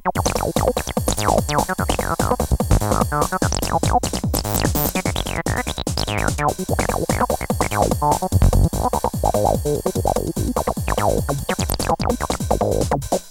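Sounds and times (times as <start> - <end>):
saw cutting: 0.2 - 13.2.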